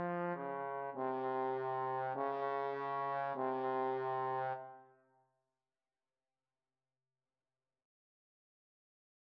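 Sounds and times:
trombone duet: 0.0 - 4.8.

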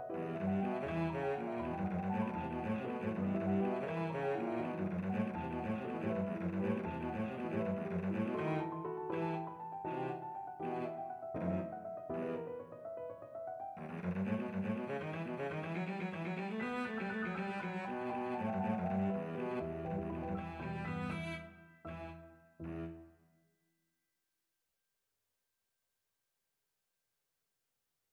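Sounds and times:
cello playing a scherzo: 0.1 - 12.6, 13.8 - 23.0.

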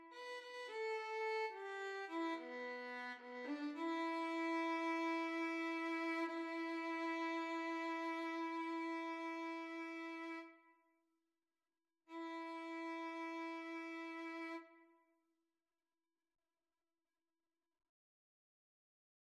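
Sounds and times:
violin and cello duet: 0.0 - 10.5, 12.1 - 14.7.

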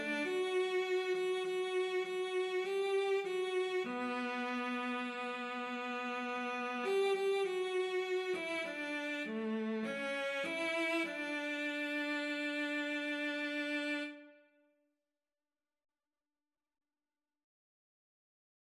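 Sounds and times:
cello duet: 0.0 - 14.3.

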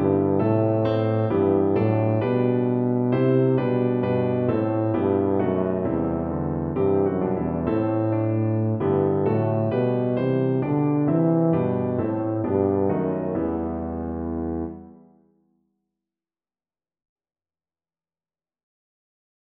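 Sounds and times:
tuba melody: 0.0 - 15.2.

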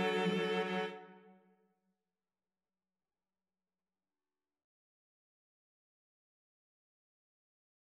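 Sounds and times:
viola: 0.0 - 1.2
cello: 0.0 - 1.3.

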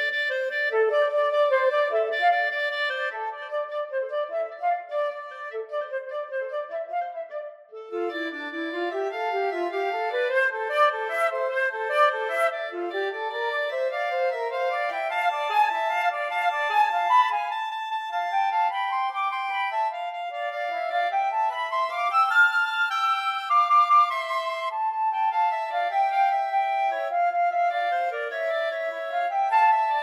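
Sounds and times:
flute playing in a duet: 0.0 - 30.0.

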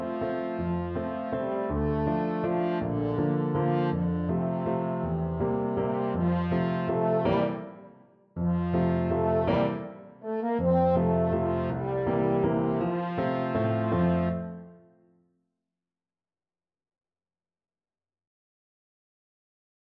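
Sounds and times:
French horn: 0.0 - 7.7, 8.4 - 14.8.

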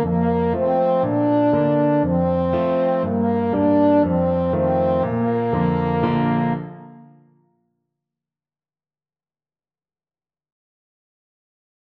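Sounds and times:
French horn: 0.0 - 7.2.

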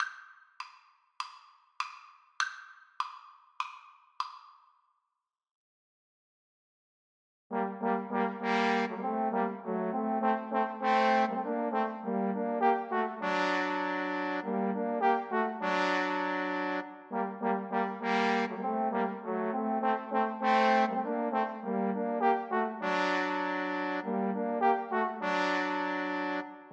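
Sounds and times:
trombone trio: 7.5 - 26.7.

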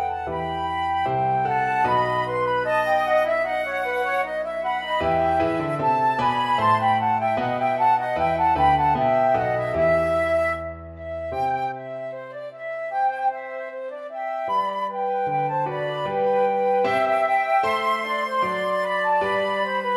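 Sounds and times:
flute duet: 0.0 - 19.9.

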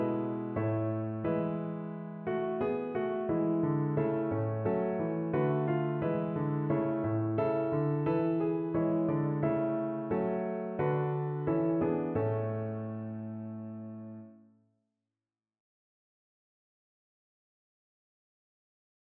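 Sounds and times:
piano carol: 0.0 - 14.4.

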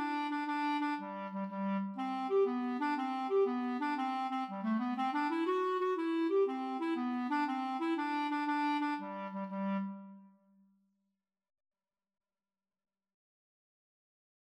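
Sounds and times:
clarinet duet playing Irish jig medley: 0.0 - 10.1.

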